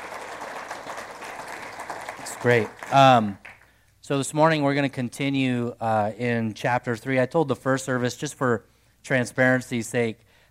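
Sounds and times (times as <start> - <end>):
audience round of applause: 0.0 - 3.7
speech: 2.4 - 3.4, 4.1 - 10.3.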